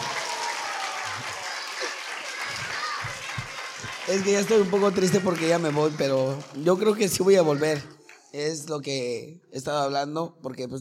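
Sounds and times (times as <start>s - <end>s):
audience clapping: 0.0s - 8.3s
children shouting and chattering: 0.2s - 8.4s
speech: 4.1s - 10.8s.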